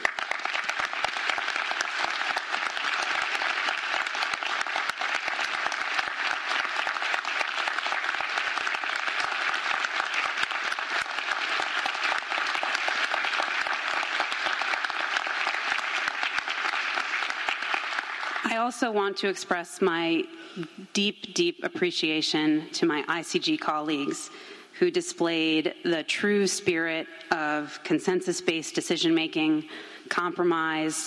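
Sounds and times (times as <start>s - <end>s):
audience applause: 0.0s - 18.5s
speech: 18.6s - 31.0s.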